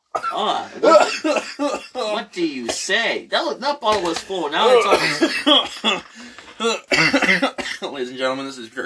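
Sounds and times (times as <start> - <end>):
person coughing after choking on a drink: 0.2 - 2.2, 4.8 - 7.9
speech: 0.4 - 8.8.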